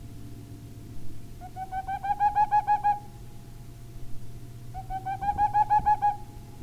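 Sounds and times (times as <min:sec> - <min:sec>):
low background hum: 0:00.0 - 0:06.6
boreal owl hooting: 0:01.4 - 0:03.2, 0:04.7 - 0:06.6.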